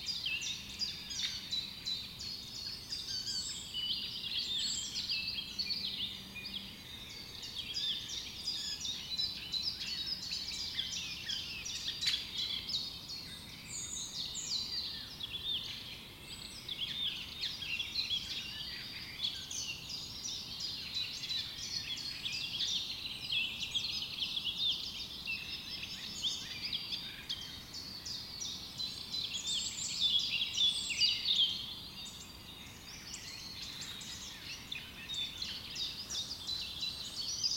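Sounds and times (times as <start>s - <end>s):
spring morning woods ambience: 0.0s - 37.5s.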